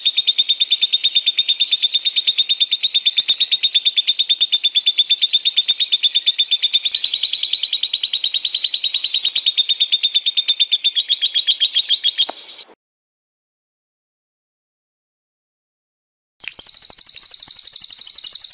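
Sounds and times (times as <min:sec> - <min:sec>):
lovebird chirp: 0:00.0 - 0:12.8, 0:16.4 - 0:18.5.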